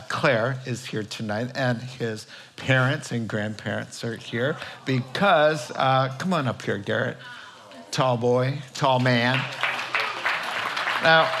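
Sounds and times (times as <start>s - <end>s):
speech: 0.2s - 7.4s, 8.0s - 9.7s, 11.0s - 11.3s
scattered handclaps from a crowd: 9.0s - 11.3s.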